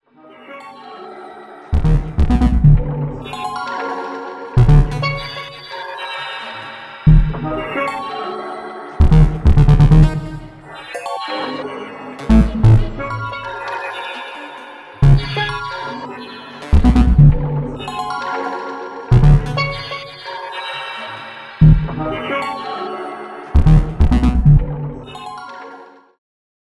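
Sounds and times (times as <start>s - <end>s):
chaotic multi MIDI music: 1.7s - 3.7s, 4.6s - 5.5s, 7.1s - 7.8s, 9.0s - 11.6s, 12.2s - 13.7s, 15.0s - 15.8s, 16.6s - 20.1s, 21.6s - 22.6s, 23.5s - 25.2s.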